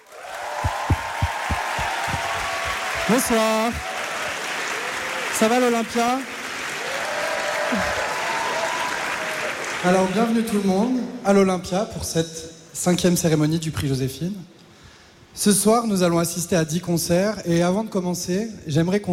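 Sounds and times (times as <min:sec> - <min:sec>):
audience applause: 0:00.0 - 0:10.2
speech: 0:03.1 - 0:03.9, 0:05.4 - 0:06.3, 0:07.7 - 0:08.0, 0:09.8 - 0:14.6, 0:15.4 - 0:19.1.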